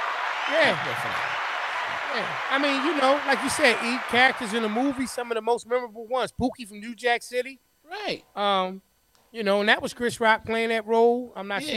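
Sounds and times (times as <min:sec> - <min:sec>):
clapping: 0:00.0 - 0:05.1
person cheering: 0:00.0 - 0:05.3
speech: 0:00.5 - 0:11.7.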